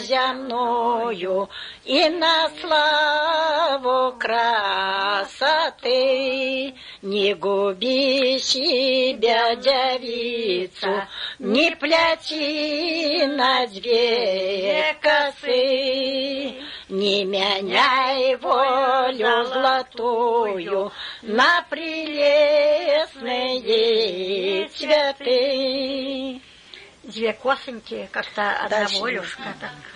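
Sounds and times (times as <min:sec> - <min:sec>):
female performer from Preili district in Latgale singing a verse: 0:00.0 - 0:26.4, 0:27.0 - 0:29.9.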